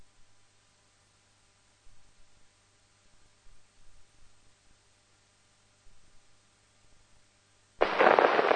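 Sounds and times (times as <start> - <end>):
gunfire salvo on the command to fire: 7.8 - 8.5.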